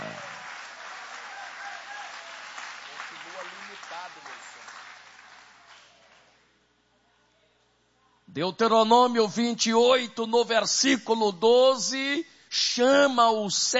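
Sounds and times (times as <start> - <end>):
audience applauding: 0.0 - 6.4
speech: 8.4 - 13.7.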